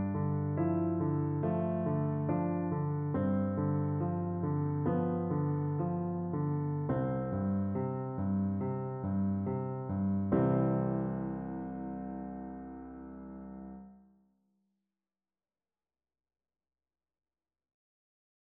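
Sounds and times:
meditation piano music: 0.0 - 14.0.

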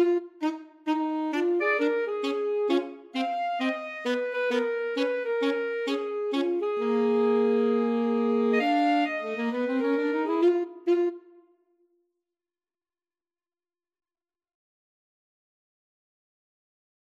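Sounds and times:
alto saxophone duet: 0.0 - 11.5.

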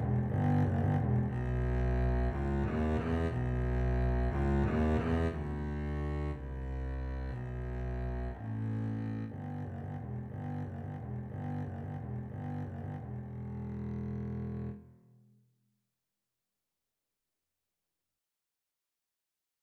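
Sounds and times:
double bass duet: 0.0 - 14.8.

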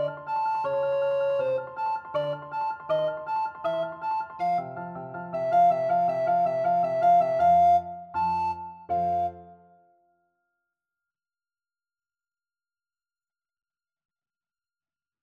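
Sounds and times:
alto recorder: 0.0 - 9.9.

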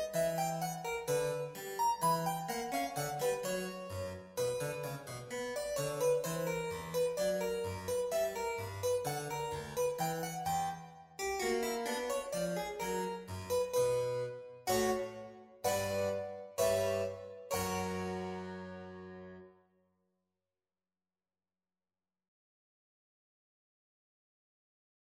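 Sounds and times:
harpsichord fantasia: 0.0 - 19.5.

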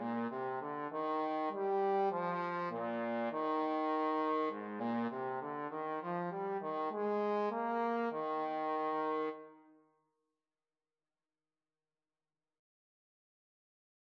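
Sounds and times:
trumpet and trombone duet: 0.0 - 9.4.

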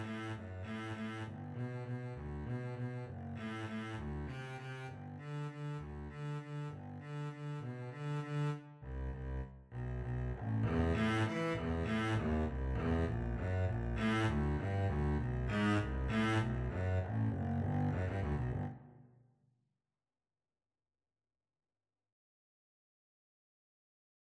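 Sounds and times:
double bass: 0.0 - 18.8
violin: 0.0 - 18.8.

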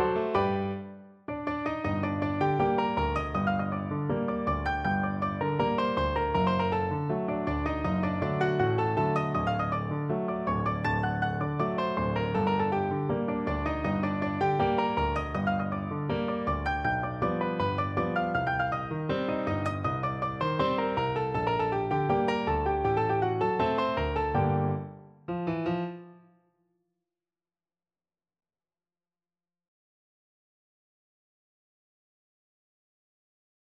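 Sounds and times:
piano duet: 0.0 - 26.4.

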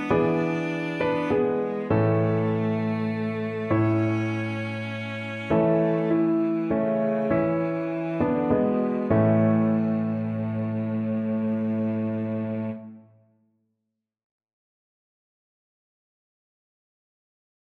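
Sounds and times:
cello: 0.0 - 13.2.

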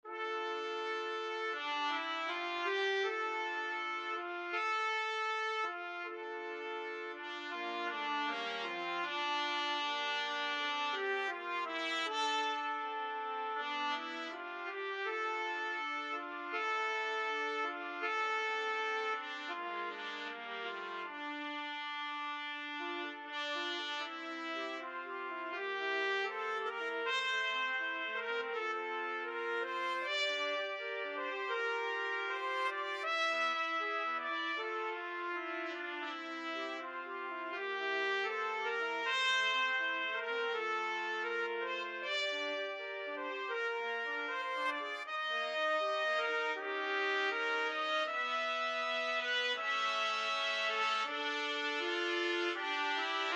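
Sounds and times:
trumpet trio playing: 0.1 - 53.3.

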